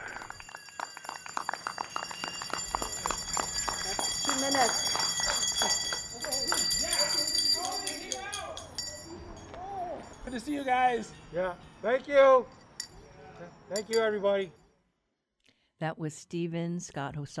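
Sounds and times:
people clapping in support of healthcare workers: 0.0s - 8.9s
bells ringing in support of healthcare workers: 0.0s - 14.5s
speech: 4.4s - 4.9s, 10.4s - 12.6s, 13.7s - 14.6s, 15.8s - 17.3s.

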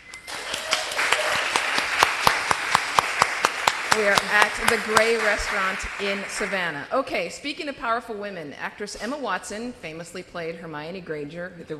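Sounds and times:
live audience applauding at the Gray Restaurant in Savannah: 0.0s - 6.8s
speech: 4.0s - 11.7s.

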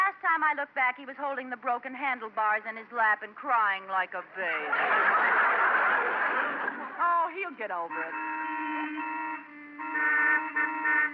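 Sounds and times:
speech: 0.4s - 9.1s
laughter: 4.4s - 7.3s
car horns honking in traffic: 7.2s - 11.1s.

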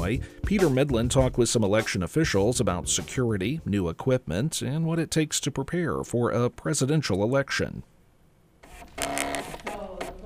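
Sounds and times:
speech: 0.1s - 8.0s
voting machine printing a long receipt for early voting in Illinois: 8.6s - 10.2s.

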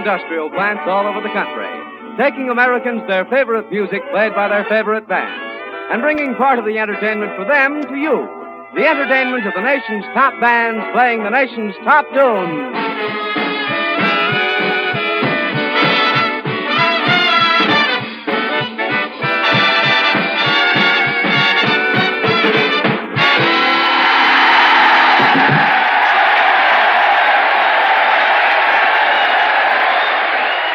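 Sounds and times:
speech: 0.0s - 12.9s
band music: 0.0s - 26.3s
audience of officers and enlisted men cheering and applauding at Jefferson Barracks, Missouri: 13.4s - 18.1s, 19.2s - 30.7s.

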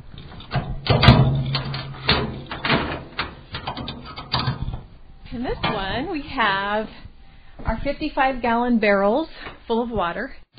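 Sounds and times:
steel shipping container doors opening: 0.0s - 6.5s
speech: 5.4s - 10.5s.

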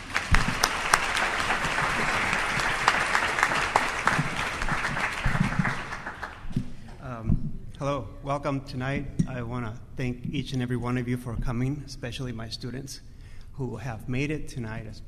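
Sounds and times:
audience applauding a speaker at a lecture: 0.0s - 7.1s
speech: 7.9s - 15.0s.

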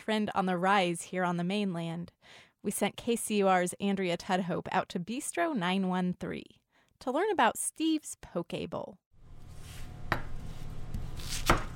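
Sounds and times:
speech: 0.0s - 9.0s
knife slicing cabbage for a poke bowl at Bistro 913: 9.4s - 11.7s.

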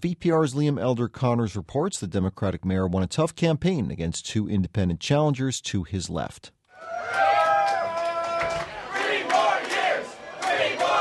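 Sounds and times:
speech: 0.0s - 7.2s
crowd of supporters cheering and whooping enthusiastically: 6.7s - 10.9s.

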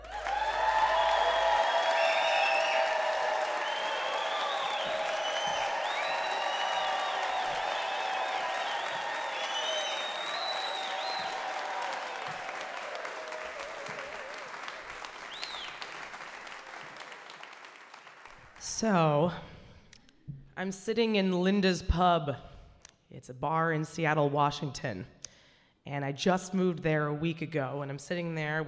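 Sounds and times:
audience applause: 0.0s - 18.6s
speech: 18.8s - 19.5s, 20.6s - 22.5s, 23.2s - 25.2s, 25.9s - 28.6s.

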